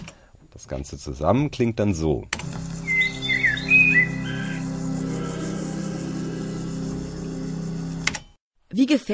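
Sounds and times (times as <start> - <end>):
speech: 0.6 - 2.5, 8.8 - 9.1
single bird singing high thin chirps and whistled phrases: 2.8 - 4.7
sustained tonal chord: 3.9 - 8.0.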